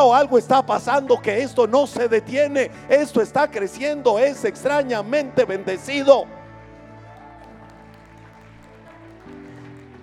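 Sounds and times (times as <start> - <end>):
speech: 0.0 - 6.4
audience applause: 6.8 - 10.0.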